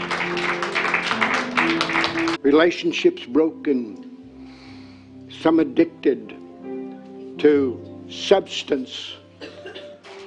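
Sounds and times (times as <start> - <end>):
audience hand clapping: 0.0 - 2.4
speech: 2.4 - 4.1, 5.4 - 6.4, 7.4 - 9.5.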